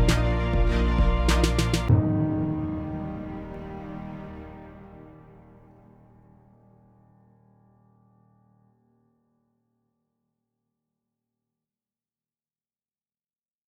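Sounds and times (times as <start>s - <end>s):
fast beat: 0.0s - 3.8s.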